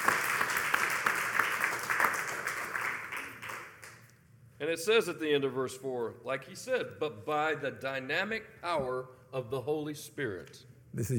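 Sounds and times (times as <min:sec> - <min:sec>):
audience clapping: 0:00.0 - 0:04.1
speech: 0:04.6 - 0:11.1.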